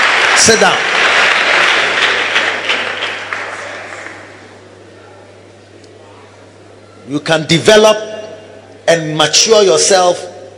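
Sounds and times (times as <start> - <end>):
people clapping hands: 0.0 - 4.5
speech: 0.4 - 0.9, 7.1 - 8.1, 8.9 - 10.3.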